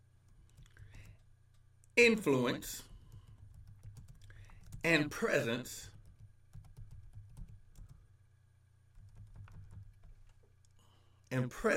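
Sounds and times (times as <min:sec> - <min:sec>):
speech: 0:02.0 - 0:02.9, 0:04.8 - 0:05.9, 0:11.3 - 0:11.7
typing on a computer keyboard: 0:03.0 - 0:04.9, 0:05.9 - 0:08.0, 0:08.9 - 0:10.4.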